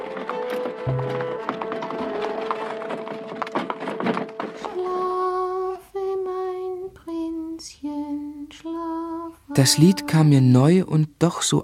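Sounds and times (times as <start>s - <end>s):
horse-drawn coach rumbling and creaking: 0.0s - 5.6s
horse hooves clip-clopping in a trot: 0.0s - 5.8s
scattered knocks: 0.3s - 4.8s
speech: 0.8s - 1.3s, 9.6s - 11.6s.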